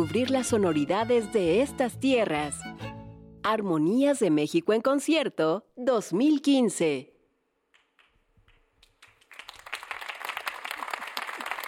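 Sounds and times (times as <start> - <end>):
speech: 0.0 - 2.8, 3.4 - 7.1
concert audience applause: 8.8 - 11.6.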